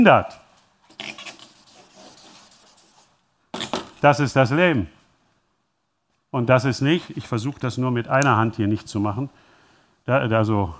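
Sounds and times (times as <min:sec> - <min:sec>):
speech: 0:00.0 - 0:00.4, 0:04.0 - 0:05.0, 0:06.3 - 0:09.4, 0:10.1 - 0:10.7
scratchy rubbing pen strokes drawing a picture: 0:00.9 - 0:03.1.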